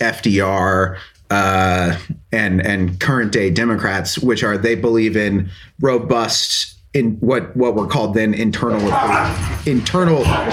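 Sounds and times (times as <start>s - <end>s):
speech: 0.0s - 10.5s
dogs whimpering and yipping: 9.0s - 9.6s.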